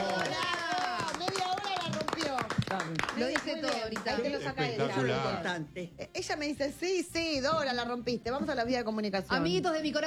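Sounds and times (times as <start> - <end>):
crowd applauding: 0.0 - 4.4
speech: 2.9 - 10.0.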